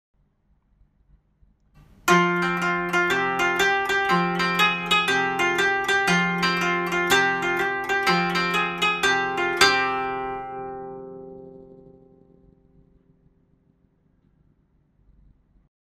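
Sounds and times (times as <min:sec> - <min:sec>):
koto: 0:01.8 - 0:13.2.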